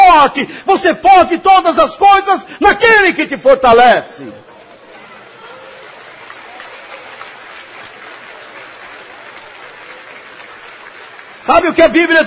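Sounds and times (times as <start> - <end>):
speech: 0.2 - 4.5, 11.4 - 12.2
audience applause: 4.5 - 12.2.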